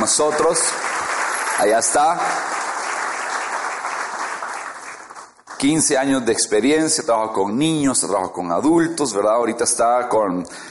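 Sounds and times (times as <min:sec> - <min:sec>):
speech: 0:00.0 - 0:01.0, 0:01.6 - 0:02.6, 0:05.6 - 0:10.6
crowd applauding: 0:00.0 - 0:06.0.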